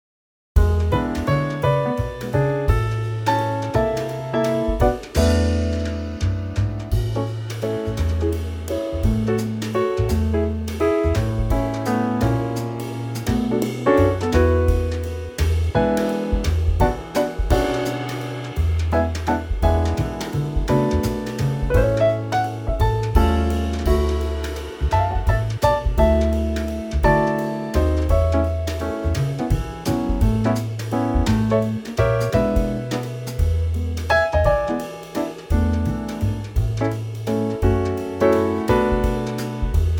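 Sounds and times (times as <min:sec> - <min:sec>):
backing track music: 0:00.6 - 0:39.9.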